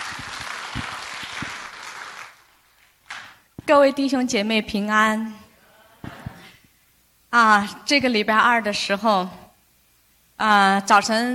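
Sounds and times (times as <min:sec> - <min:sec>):
audience applause: 0:00.0 - 0:03.4
speech: 0:03.7 - 0:05.4, 0:07.3 - 0:09.4, 0:10.4 - 0:11.3.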